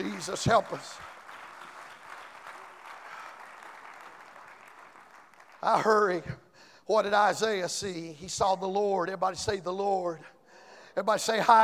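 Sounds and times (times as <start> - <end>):
speech: 0.0 - 1.1, 5.6 - 10.4, 11.0 - 11.6
audience clapping hands: 0.0 - 6.4.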